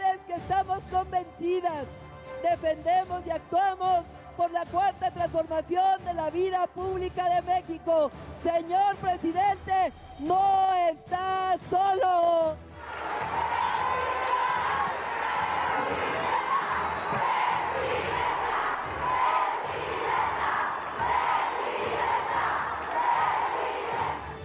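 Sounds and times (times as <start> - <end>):
speech: 0.7 - 13.4
large crowd cheering and chanting: 12.8 - 24.4.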